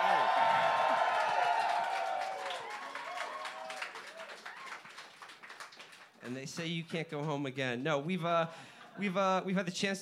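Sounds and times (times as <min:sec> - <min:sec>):
live audience cheering and applauding: 0:00.0 - 0:06.2
speech: 0:06.3 - 0:10.0.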